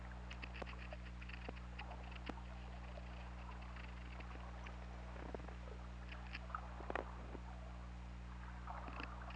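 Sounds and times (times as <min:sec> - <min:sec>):
whale clicks: 0:00.2 - 0:07.5, 0:08.6 - 0:09.3.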